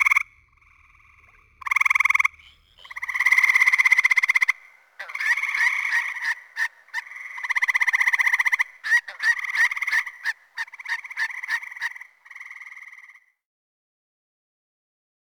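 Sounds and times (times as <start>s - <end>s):
Gray treefrog calls: 0.0s - 13.3s.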